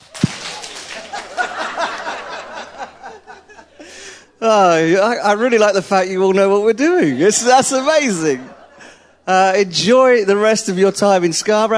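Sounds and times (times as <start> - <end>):
audience clapping: 0.0 - 2.7
laughter: 0.3 - 4.2, 6.8 - 9.3
speech: 4.4 - 8.6, 9.3 - 11.7.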